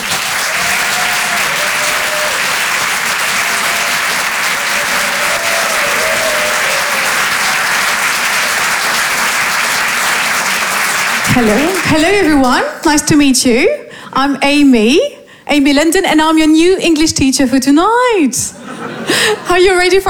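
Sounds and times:
comedy show audience applause: 0.0 - 12.8
speech: 11.4 - 20.0
laughter: 18.5 - 19.7.

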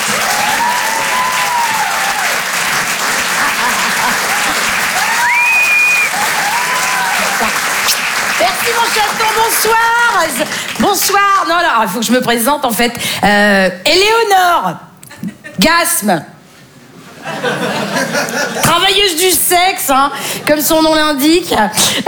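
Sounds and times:
audience cheering and shouts at a comedy show: 0.0 - 10.4
audience applause at a comedy show: 0.0 - 11.6
laughter: 2.7 - 5.4, 17.0 - 18.7
speech: 8.7 - 14.9, 15.6 - 16.3, 17.2 - 22.0.

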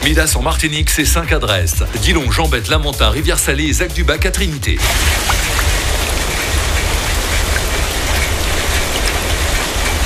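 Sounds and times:
speech: 0.0 - 5.6
heavy rain falling: 4.7 - 10.0.

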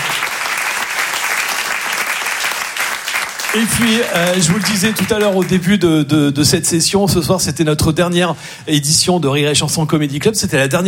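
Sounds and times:
comedy club audience applause for the sound, lighting and stage crews: 0.0 - 5.6
speech: 3.6 - 10.8.

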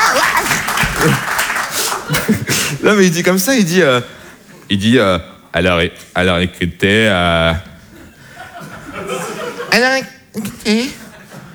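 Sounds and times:
audience applause: 0.0 - 2.8
laughter: 0.0 - 3.1, 7.9 - 10.1, 10.8 - 11.5
speech: 1.0 - 1.3, 2.9 - 7.7, 9.8 - 11.0.

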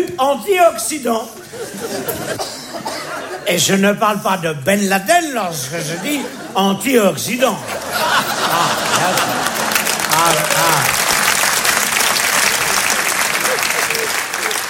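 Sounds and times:
speech: 0.0 - 9.6, 10.2 - 11.0
laughter: 1.4 - 3.6, 5.6 - 6.8, 7.4 - 14.6
audience applause: 7.8 - 14.6.

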